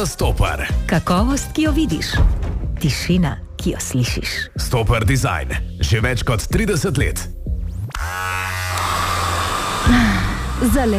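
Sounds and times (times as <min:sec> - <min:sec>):
speech: 0:00.0 - 0:07.4, 0:10.6 - 0:10.9
electric shaver buzzing: 0:07.9 - 0:10.9.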